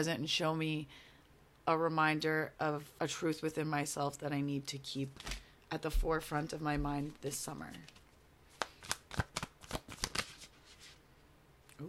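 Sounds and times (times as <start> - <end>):
speech: 0.0 - 8.0
tarot cards being shuffled: 6.8 - 11.0.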